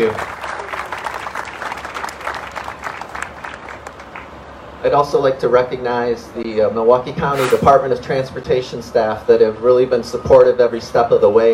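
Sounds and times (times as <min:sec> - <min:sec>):
speech: 0:00.0 - 0:00.4, 0:04.8 - 0:11.5
audience applause: 0:00.1 - 0:03.9.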